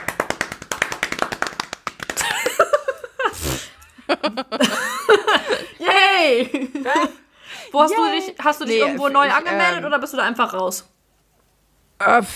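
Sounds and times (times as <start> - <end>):
inserted applause sound effect: 0.0 - 2.2
laughter: 2.2 - 7.2
speech: 4.2 - 11.0, 12.0 - 12.3.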